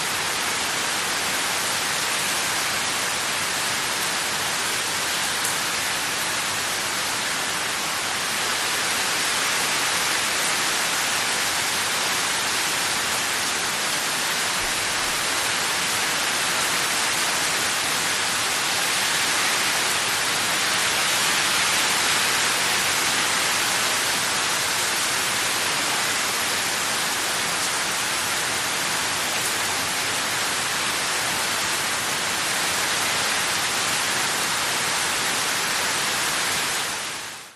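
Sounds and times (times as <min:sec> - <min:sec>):
medium heavy rain on trees and hard ground: 0:00.0 - 0:37.5.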